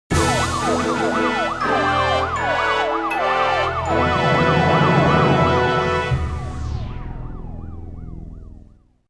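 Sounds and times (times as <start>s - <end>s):
fanfare: 0.1s - 6.8s.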